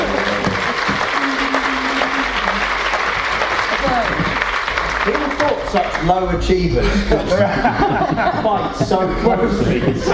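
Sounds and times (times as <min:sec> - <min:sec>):
laughter: 0:00.0 - 0:02.7, 0:06.8 - 0:10.1
audience applause: 0:00.0 - 0:06.2
speech: 0:05.7 - 0:10.1.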